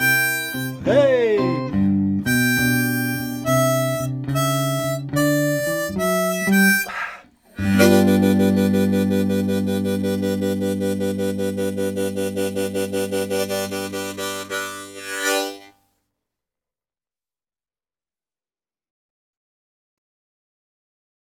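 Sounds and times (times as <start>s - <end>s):
instrumental music: 0.0s - 15.7s.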